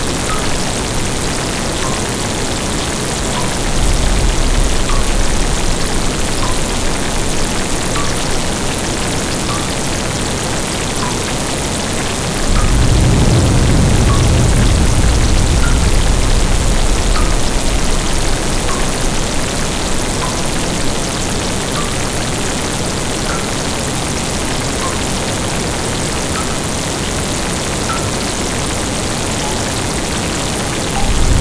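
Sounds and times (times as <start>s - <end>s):
rain: 0.0s - 31.3s
thunder: 2.5s - 9.7s, 12.1s - 22.2s, 30.4s - 31.3s.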